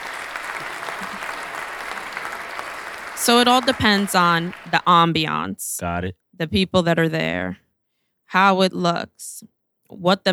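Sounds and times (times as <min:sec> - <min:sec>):
applause: 0:00.0 - 0:05.3
laughter: 0:00.0 - 0:06.9
speech: 0:03.2 - 0:07.6, 0:08.3 - 0:10.3.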